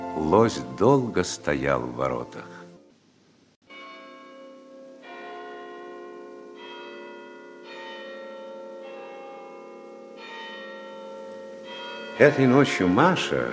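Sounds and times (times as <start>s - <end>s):
speech: 0.2s - 2.5s, 12.2s - 13.4s
distant clock chiming: 3.7s - 13.4s.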